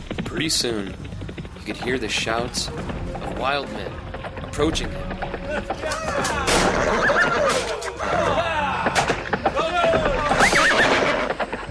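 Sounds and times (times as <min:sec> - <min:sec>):
horse hooves thundering on the ground: 0:00.0 - 0:11.6
speech: 0:00.4 - 0:09.0.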